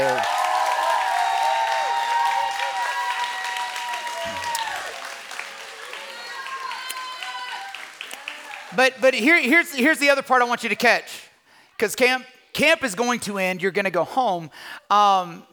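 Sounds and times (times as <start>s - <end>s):
audience applause: 0.0s - 9.0s
speech: 8.8s - 11.2s, 11.8s - 15.5s.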